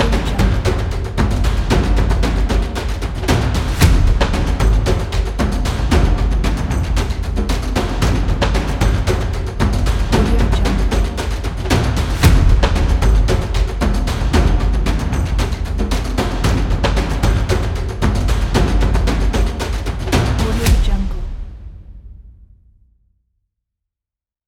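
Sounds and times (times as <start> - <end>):
tribal drums: 0.0 - 22.5.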